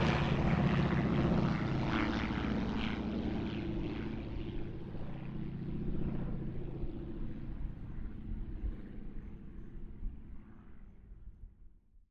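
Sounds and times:
CT4 Winjeel Wirraway Harvard aircraft passing: 0.0s - 8.1s.

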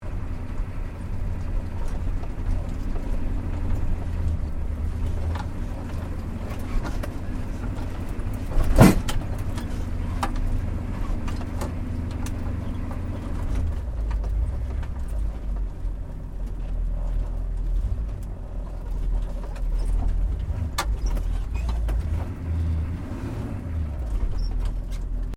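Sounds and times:
US Air Force model Humvee 4WD maneuvering slowly heard from interior: 0.0s - 25.3s.

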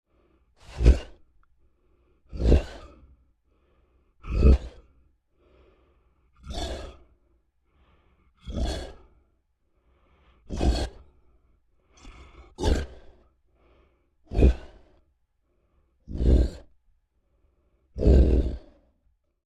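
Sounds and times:
large creature grunts and efforts: 0.6s - 1.2s, 2.3s - 3.1s, 4.2s - 5.0s, 6.4s - 7.1s, 8.4s - 9.1s, 10.5s - 11.1s, 11.9s - 13.3s, 14.3s - 15.0s, 16.1s - 16.7s, 18.0s - 18.9s.

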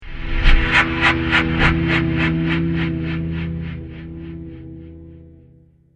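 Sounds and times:
rough trailer impact hit: 0.0s - 3.4s.

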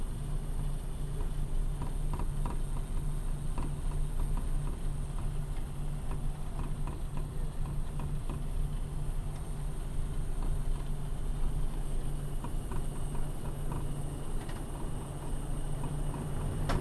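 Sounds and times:
twin engine light bomber taxiing heard from interior: 0.0s - 16.8s.

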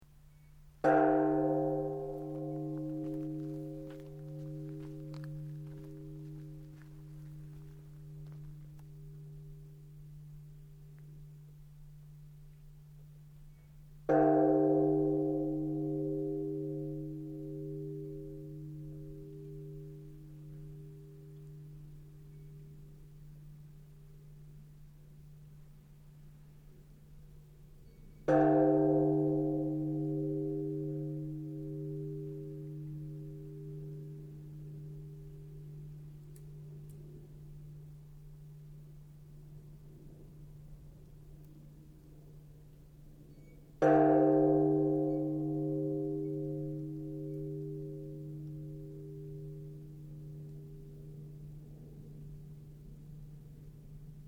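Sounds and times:
Buddhist temple bell rung at night in Sannohe: 0.8s - 11.5s, 14.1s - 23.8s, 27.9s - 39.0s, 43.3s - 54.1s.

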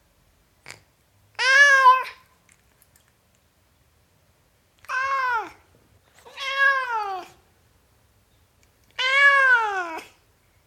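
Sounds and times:
tom cat meowing: 1.4s - 2.3s, 4.8s - 5.6s, 6.2s - 7.4s, 8.9s - 10.2s.

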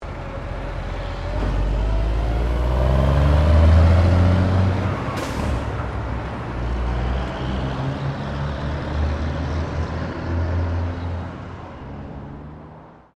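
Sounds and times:
semi-trailer truck driving off in traffic: 0.0s - 12.7s.

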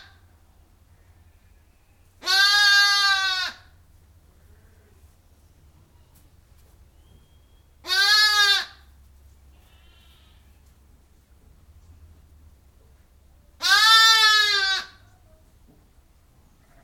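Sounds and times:
sheep bleating inside a barn: 2.2s - 3.7s, 7.8s - 8.8s, 9.5s - 10.6s, 13.6s - 15.0s, 16.6s - 16.8s.

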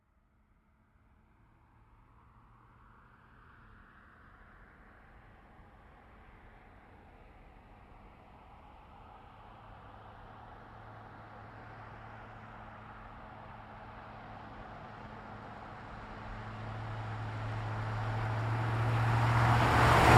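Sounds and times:
GMC Savana truck engine: 9.4s - 20.1s.

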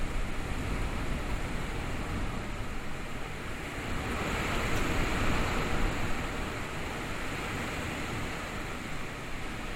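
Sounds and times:
intense wind storm: 0.0s - 9.7s.

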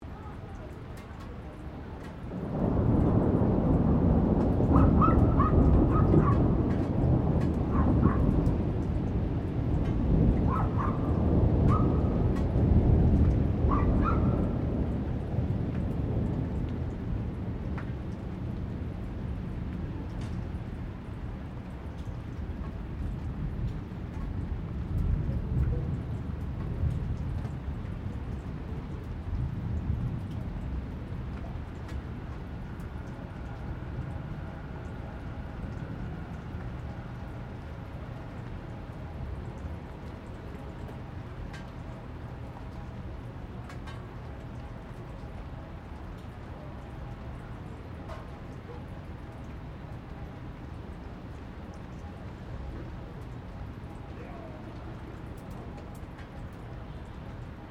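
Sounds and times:
thunder: 2.0s - 39.4s
distant dog barking: 4.7s - 6.6s, 7.6s - 8.4s, 10.4s - 12.2s, 13.7s - 14.6s, 48.6s - 49.0s.

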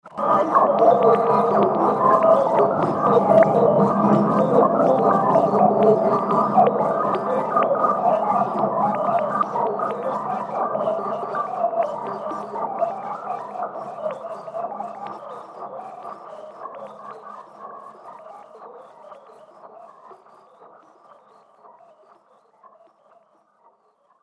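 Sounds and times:
alchemy fantasy ambience: 0.1s - 15.0s.

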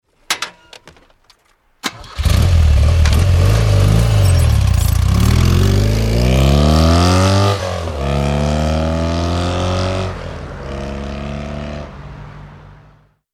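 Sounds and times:
BMW 1100 motorbike starting and riding away: 1.9s - 10.0s.

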